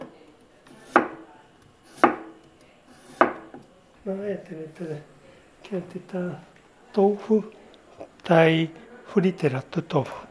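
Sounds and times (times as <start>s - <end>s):
knife slicing through new potatoes: 0.6s - 3.6s
speech: 4.0s - 5.1s, 5.7s - 10.2s.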